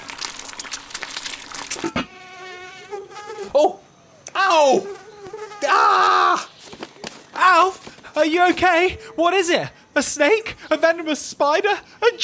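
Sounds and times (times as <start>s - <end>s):
mosquito buzzing: 0.0s - 7.4s
speech: 8.2s - 12.2s.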